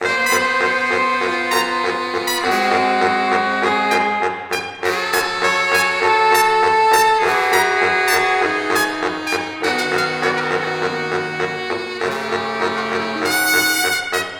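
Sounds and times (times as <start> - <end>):
horn section effect: 0.0 - 14.3.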